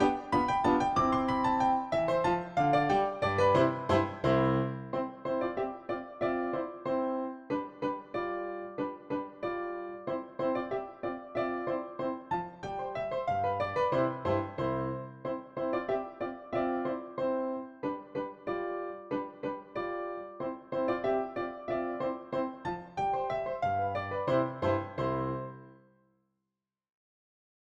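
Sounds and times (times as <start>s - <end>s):
dance piano on a modelled Bechstein: 0.0s - 25.8s.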